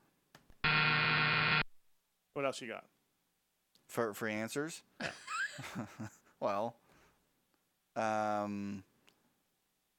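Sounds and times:
quiz buzzer: 0:00.6 - 0:01.6
speech: 0:02.4 - 0:03.0, 0:03.9 - 0:06.8, 0:08.0 - 0:08.9.

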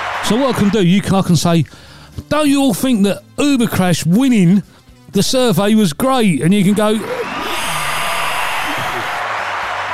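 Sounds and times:
canned applause sound effect: 0:00.0 - 0:01.1, 0:06.7 - 0:09.9
speech: 0:00.3 - 0:07.2.

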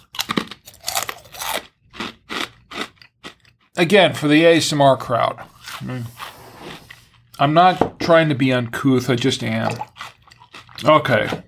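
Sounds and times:
crunching and chewing potato chips: 0:00.0 - 0:03.8, 0:09.8 - 0:11.4
speech: 0:03.8 - 0:06.2, 0:07.4 - 0:09.9, 0:10.8 - 0:11.4.

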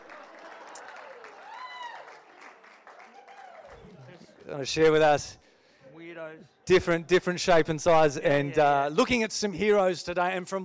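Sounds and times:
audience applause welcoming a speaker at a morning gathering: 0:00.0 - 0:04.6
speech: 0:04.5 - 0:05.4, 0:06.7 - 0:10.6.

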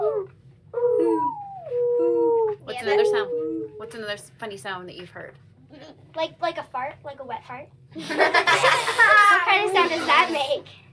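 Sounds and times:
child imitating owl hoot: 0:00.0 - 0:03.9
speech: 0:03.9 - 0:10.8
laughter: 0:08.0 - 0:09.9.

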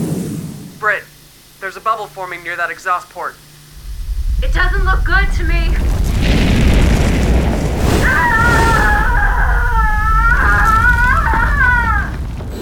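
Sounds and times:
speech: 0:00.8 - 0:03.4, 0:04.4 - 0:05.9
fireball explosion: 0:03.7 - 0:12.6.

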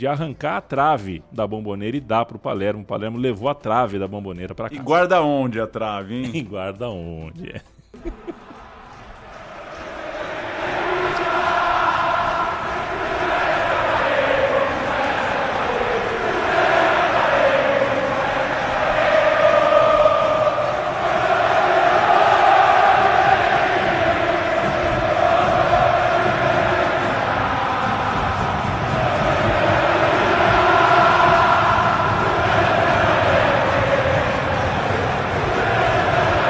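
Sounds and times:
speech: 0:00.0 - 0:08.5
laughter: 0:06.1 - 0:06.6, 0:07.3 - 0:10.3
football supporters chanting in unison in a stadium: 0:08.5 - 0:36.4.

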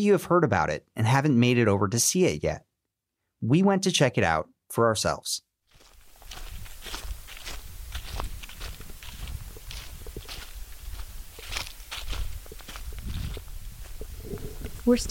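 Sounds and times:
speech: 0:00.0 - 0:02.7, 0:03.4 - 0:05.5, 0:14.9 - 0:15.0
footsteps crunching dry leaves on a gravel path: 0:05.7 - 0:15.0.

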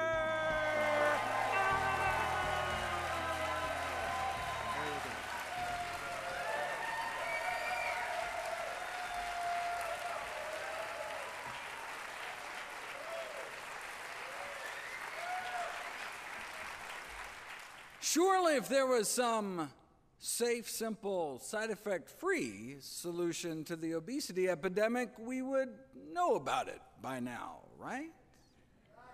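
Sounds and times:
audience whoops and cheers: 0:00.0 - 0:12.1, 0:12.9 - 0:13.6, 0:14.2 - 0:16.0
large audience applause welcoming Dr. Michael Greger on stage: 0:00.0 - 0:18.0
speech: 0:18.1 - 0:28.2.

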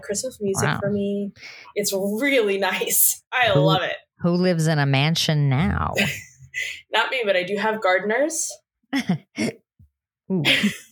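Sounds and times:
speech: 0:00.0 - 0:09.6, 0:10.3 - 0:10.8
person burping: 0:00.6 - 0:01.0, 0:09.0 - 0:09.7, 0:10.3 - 0:10.8
person laughing: 0:00.6 - 0:01.0, 0:05.9 - 0:06.4, 0:08.9 - 0:09.6, 0:10.3 - 0:10.8.

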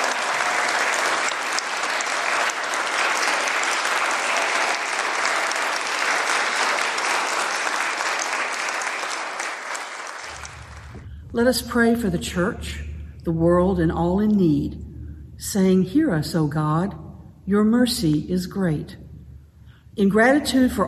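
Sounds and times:
audience applause: 0:00.0 - 0:11.0
speech: 0:11.4 - 0:19.0, 0:20.0 - 0:20.8.

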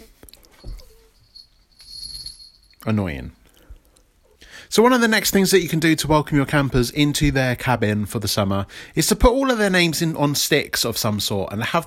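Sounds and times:
soft rustling and patter: 0:00.0 - 0:02.4
small cat collar bell jingling: 0:00.4 - 0:03.3
speech: 0:02.8 - 0:03.4, 0:04.7 - 0:11.8.

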